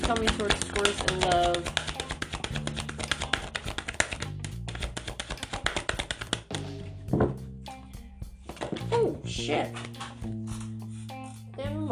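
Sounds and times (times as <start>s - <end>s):
tarot deck being shuffled as cards jump out: 0.0s - 6.9s, 8.5s - 8.9s, 9.6s - 11.0s
speech: 0.1s - 1.9s, 9.4s - 9.9s.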